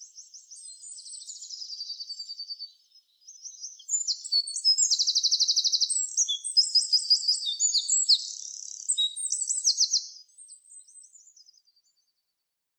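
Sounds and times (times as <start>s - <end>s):
Eurasian wren song: 0.0s - 12.0s.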